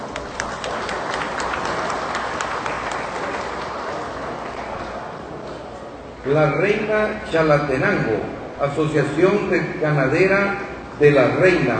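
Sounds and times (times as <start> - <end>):
crowd applauding: 0.0 - 5.2
speech: 6.2 - 11.7.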